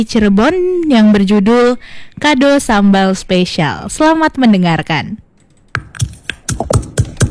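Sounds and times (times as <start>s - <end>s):
speech: 0.0s - 5.2s
slippery tomatoes squeezed and crushed by hand: 6.1s - 7.2s.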